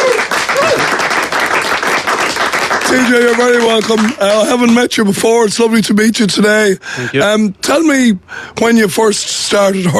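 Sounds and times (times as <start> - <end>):
audience applauding a hurling legend guest: 0.0 - 4.3
speech: 2.9 - 9.9.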